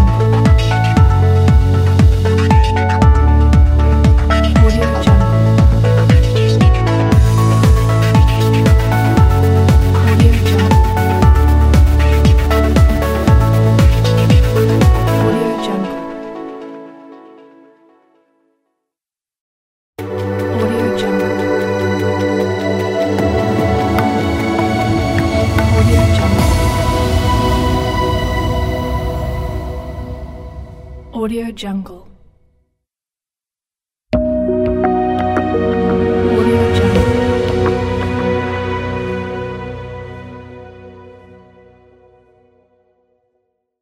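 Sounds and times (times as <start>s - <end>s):
inspiring logo music: 0.1s - 15.3s, 20.0s - 31.1s, 34.1s - 42.4s.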